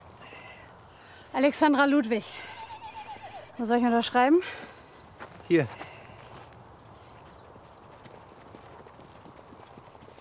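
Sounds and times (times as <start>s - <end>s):
speech: 1.3s - 2.5s, 3.6s - 4.7s, 5.5s - 5.9s
racehorse hooves trotting on a hard track: 2.6s - 10.1s.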